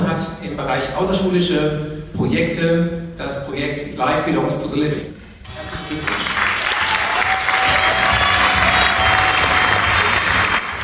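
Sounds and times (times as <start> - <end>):
speech: 0.6 - 6.4
audience applause: 5.5 - 10.8.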